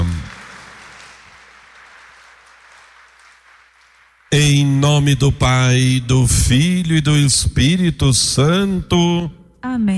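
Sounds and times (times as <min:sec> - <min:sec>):
round of applause: 0:00.0 - 0:06.0
speech: 0:04.3 - 0:09.9.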